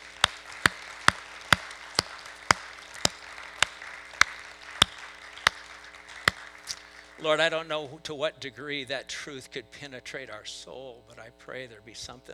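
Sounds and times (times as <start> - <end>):
audience clapping: 0.0 - 7.8
speech: 7.2 - 12.3.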